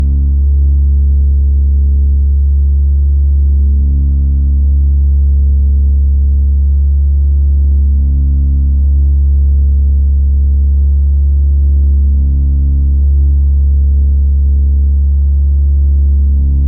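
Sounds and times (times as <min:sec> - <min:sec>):
deep low steady slightly fuzzy no-input feedback loop: 0:00.0 - 0:16.6.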